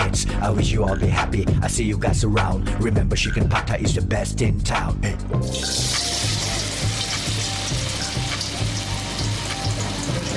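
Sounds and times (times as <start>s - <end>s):
speech: 0.4s - 6.3s
tofu frying in a pan: 5.4s - 10.3s.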